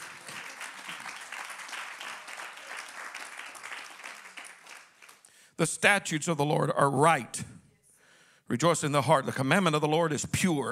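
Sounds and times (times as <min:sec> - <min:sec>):
audience clapping hands: 0:00.0 - 0:05.5
speech: 0:05.6 - 0:07.6, 0:08.5 - 0:10.6.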